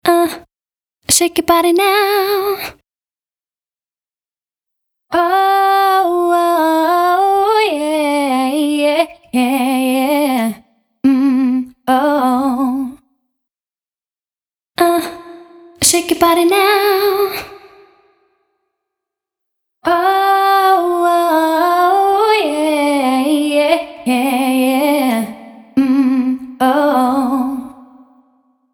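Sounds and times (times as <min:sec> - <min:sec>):
vocals with and without room reverb: 0:00.0 - 0:00.5, 0:01.1 - 0:02.8, 0:05.1 - 0:13.1, 0:14.8 - 0:18.4, 0:19.8 - 0:28.5.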